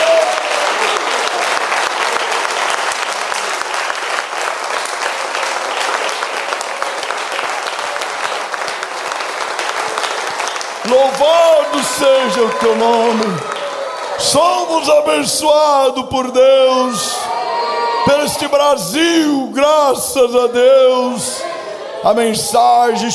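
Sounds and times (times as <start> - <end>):
audience applauding: 0.0 - 17.3
speech: 11.2 - 13.5, 14.2 - 17.3, 18.0 - 23.1.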